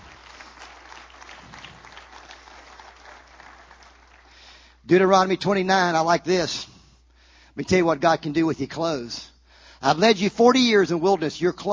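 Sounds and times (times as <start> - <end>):
audience clapping: 0.0 - 4.8
speech: 4.9 - 6.7, 7.6 - 11.7.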